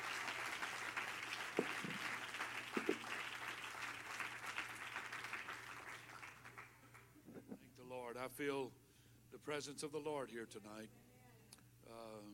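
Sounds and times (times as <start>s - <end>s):
audience clapping in steady dense applause: 0.0s - 7.2s
faint low hum: 0.0s - 12.3s
speech: 8.1s - 11.0s, 11.9s - 12.3s.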